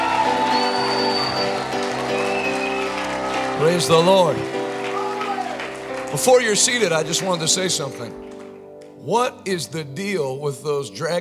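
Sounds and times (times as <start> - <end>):
audience clapping hands: 0.0 - 9.0
speech: 3.6 - 4.5, 6.1 - 8.3, 9.0 - 11.1.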